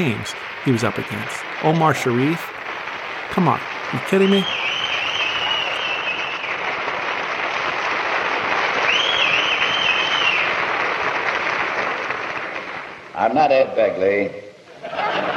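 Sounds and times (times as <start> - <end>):
speech: 0.0 - 2.5, 3.3 - 4.6, 13.2 - 14.5
large crowd cheering and applauding: 0.0 - 13.1
shrill whistles: 4.0 - 6.6, 8.8 - 10.5
laughter: 14.7 - 15.3.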